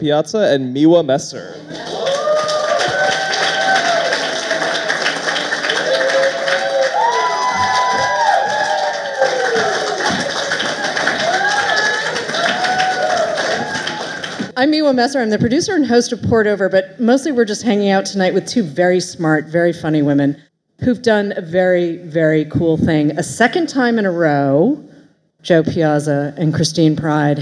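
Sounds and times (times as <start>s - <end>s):
speech: 0.0s - 2.0s, 14.6s - 27.3s
crowd applauding: 1.6s - 14.6s.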